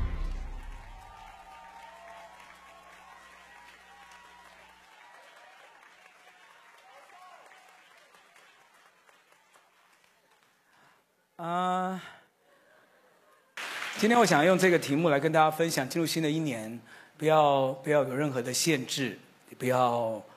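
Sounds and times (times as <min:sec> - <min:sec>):
audience clapping to welcome speaker: 0:00.1 - 0:11.1, 0:13.6 - 0:15.0
speech: 0:14.0 - 0:20.3.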